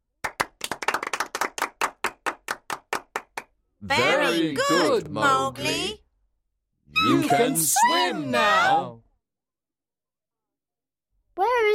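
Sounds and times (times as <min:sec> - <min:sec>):
clapping: 0:00.2 - 0:03.6
speech: 0:03.8 - 0:06.0, 0:06.9 - 0:09.0.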